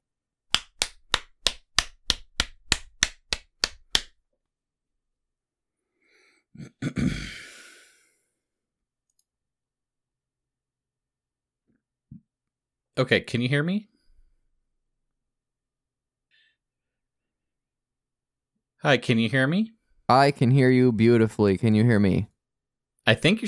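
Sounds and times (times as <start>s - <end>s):
hand clap as a sync marker: 0.5s - 4.2s
speech: 13.0s - 13.9s, 18.8s - 22.3s, 23.1s - 23.4s.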